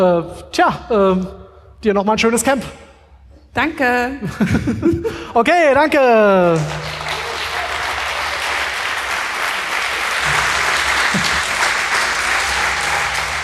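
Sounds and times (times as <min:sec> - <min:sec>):
speech: 0:00.0 - 0:02.8, 0:03.5 - 0:06.9
audience applause: 0:06.6 - 0:13.4.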